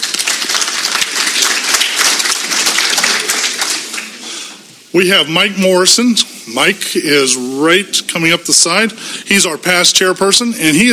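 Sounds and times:
audience applause: 0.0s - 4.3s
speech: 4.9s - 10.9s.

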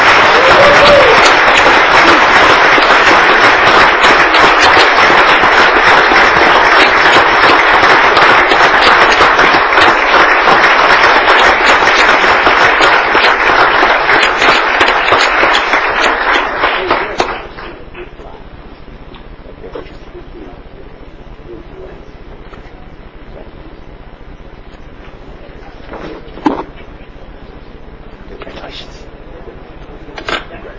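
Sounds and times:
crowd applauding: 0.0s - 17.8s.

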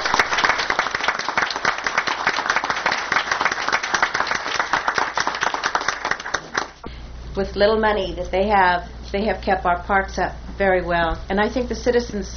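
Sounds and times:
audience applause: 0.0s - 6.8s
speech: 7.4s - 12.3s.

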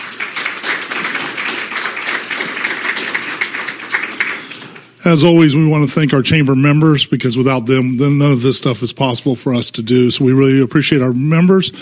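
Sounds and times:
audience applause for candidates: 0.0s - 5.0s
speech: 5.0s - 11.8s.

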